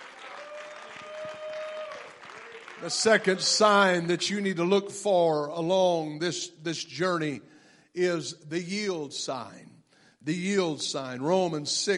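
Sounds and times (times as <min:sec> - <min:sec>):
audience clapping hands: 0:00.0 - 0:04.0
speech: 0:02.8 - 0:11.9.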